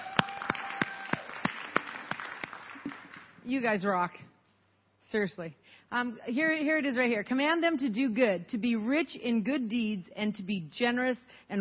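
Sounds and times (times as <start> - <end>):
single person clapping hands: 0.0 - 3.3
faint hum: 0.0 - 11.5
speech: 3.5 - 4.3, 5.1 - 11.5.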